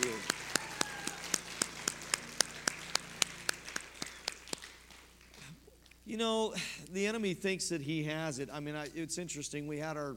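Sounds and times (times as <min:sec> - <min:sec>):
audience clapping in rhythm: 0:00.0 - 0:05.6
speech: 0:06.1 - 0:10.1.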